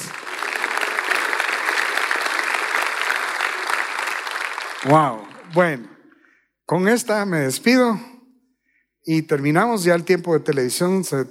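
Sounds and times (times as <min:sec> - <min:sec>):
audience applause: 0:00.0 - 0:06.0
speech: 0:04.8 - 0:06.0, 0:06.7 - 0:08.1, 0:09.0 - 0:11.3.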